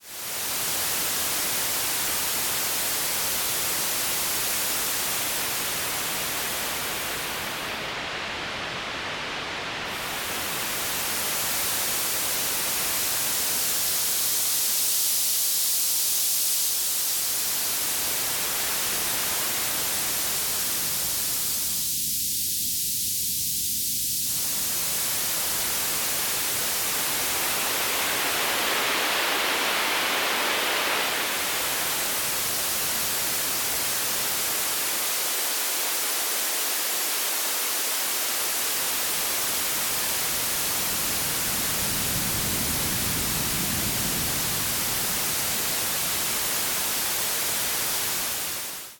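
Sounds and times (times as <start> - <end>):
equalized white noise: 0.0 - 48.9.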